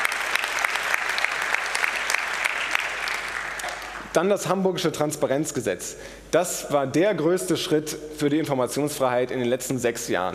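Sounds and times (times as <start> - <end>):
audience applause: 0.0 - 4.1
speech: 4.2 - 10.3.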